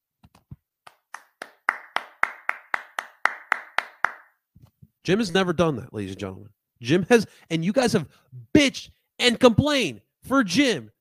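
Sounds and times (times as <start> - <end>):
person clapping: 0.3 - 4.4
speech: 5.0 - 11.0.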